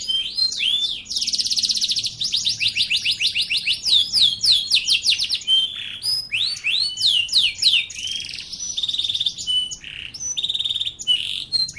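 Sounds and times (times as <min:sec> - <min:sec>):
bird singing: 0:00.0 - 0:11.7.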